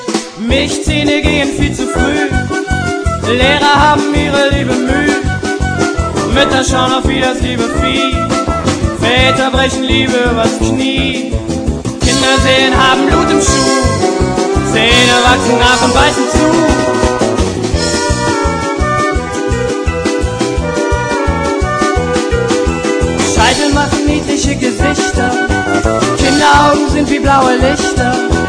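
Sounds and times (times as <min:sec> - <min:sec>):
polka music: 0:00.0 - 0:28.4.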